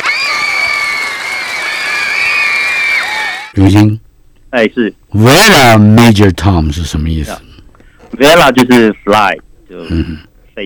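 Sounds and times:
applause: 0:00.0 - 0:03.5
speech: 0:03.6 - 0:07.5, 0:08.1 - 0:10.6.

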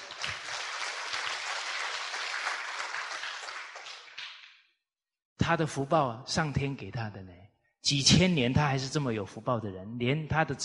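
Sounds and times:
audience applause: 0:00.0 - 0:04.4
speech: 0:05.4 - 0:10.6.

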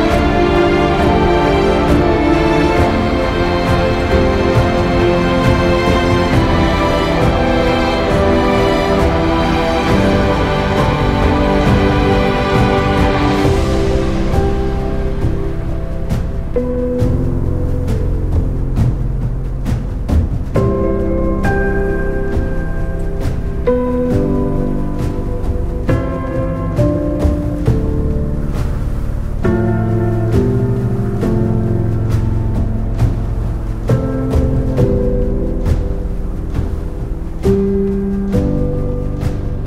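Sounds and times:
epic orchestral music: 0:00.0 - 0:39.6
regular percussion hits: 0:00.0 - 0:39.6
snowstorm wind hiss: 0:00.0 - 0:39.6.

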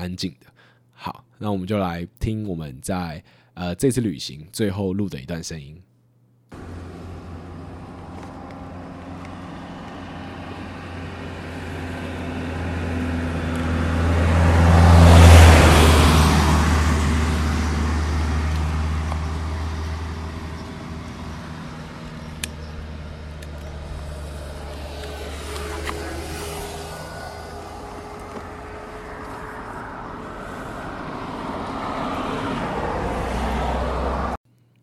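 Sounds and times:
speech: 0:00.0 - 0:05.9
cars passing on a road: 0:06.5 - 0:34.4
steady roadway hum: 0:06.5 - 0:34.4.

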